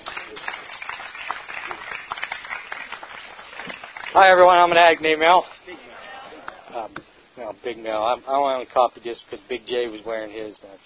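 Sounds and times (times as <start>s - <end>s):
audience applause welcoming a speaker at a Narcotics Anonymous meeting: 0.0s - 6.6s
speech: 4.2s - 5.5s, 6.8s - 10.8s.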